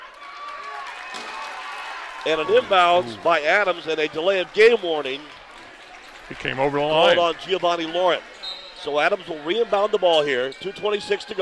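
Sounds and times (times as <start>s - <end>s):
South Bend John Adams Eagle basketball fans applauding: 0.0s - 8.3s
speech: 2.2s - 5.4s, 6.3s - 11.3s.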